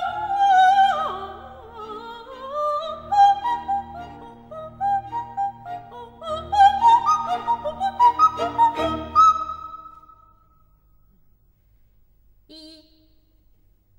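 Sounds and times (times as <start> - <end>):
soprano singing: 0.0 - 10.1.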